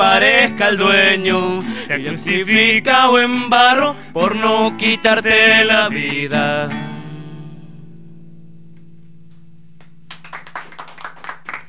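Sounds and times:
speech: 0:00.0 - 0:06.9
audience applause: 0:10.1 - 0:11.6.

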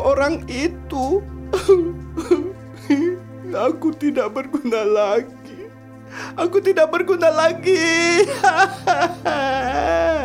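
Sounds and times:
speech: 0:00.1 - 0:05.4, 0:06.1 - 0:10.2
sad tearful person crying with sobs and a wail: 0:01.5 - 0:03.2, 0:07.8 - 0:10.2.

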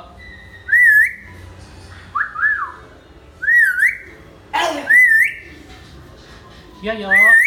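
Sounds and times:
hill myna whistling: 0:00.2 - 0:01.4, 0:03.4 - 0:04.1, 0:04.9 - 0:05.5, 0:07.1 - 0:07.4.

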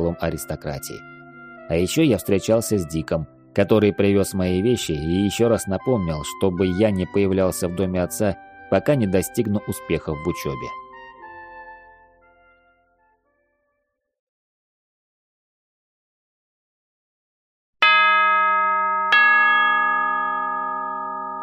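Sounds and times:
speech: 0:00.0 - 0:10.8
bell striking: 0:17.8 - 0:21.4.

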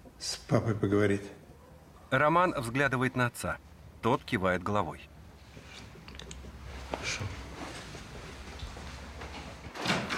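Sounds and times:
low rumbling noise: 0:00.0 - 0:10.1
speech: 0:00.2 - 0:01.4, 0:02.1 - 0:05.1
glass door sliding shut: 0:09.7 - 0:10.1.

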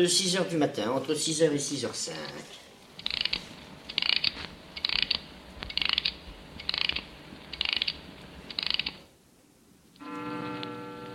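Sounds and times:
speech: 0:00.0 - 0:02.6
clock being wound: 0:03.0 - 0:09.0.

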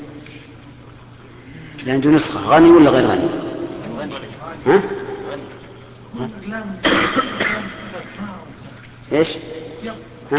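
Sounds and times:
murmured voices talking: 0:00.8 - 0:10.3
speech: 0:01.8 - 0:03.4, 0:04.1 - 0:05.5, 0:06.2 - 0:08.5, 0:09.1 - 0:10.3
person sneezing: 0:06.8 - 0:07.8.

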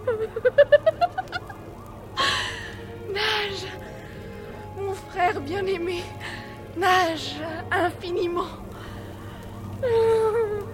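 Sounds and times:
fire engine siren: 0:00.0 - 0:10.7
sustained hiss of broad noise: 0:00.0 - 0:10.7
speech: 0:00.4 - 0:00.8, 0:05.5 - 0:08.6, 0:09.8 - 0:10.1.

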